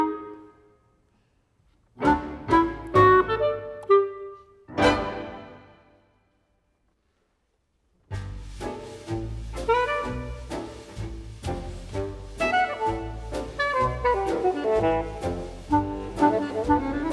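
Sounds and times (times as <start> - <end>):
clarinet: 0.0 - 0.8, 2.0 - 5.8, 9.6 - 11.0, 12.3 - 17.1.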